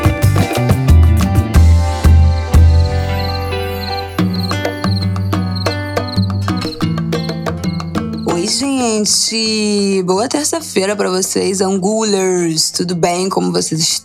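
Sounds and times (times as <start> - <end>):
upbeat music track with deep bass and sharp percussive hits: 0.0 - 8.4
crickets chirping: 1.9 - 8.9
speech: 8.6 - 14.0.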